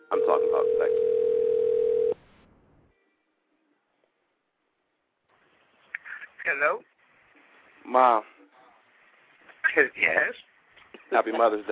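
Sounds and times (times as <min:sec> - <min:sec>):
telephone tone: 0:00.0 - 0:02.2
speech: 0:00.1 - 0:01.2, 0:08.0 - 0:08.3, 0:09.8 - 0:10.5, 0:11.1 - 0:11.7.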